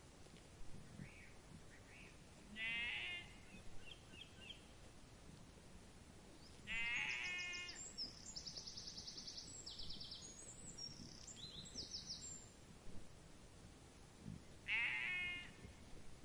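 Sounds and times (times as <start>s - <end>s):
sheep bleating: 2.6s - 3.4s, 6.7s - 7.8s, 14.7s - 15.6s.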